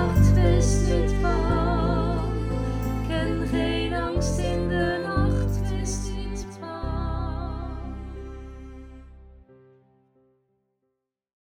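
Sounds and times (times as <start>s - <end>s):
lower voice part singing: 0.0s - 8.2s.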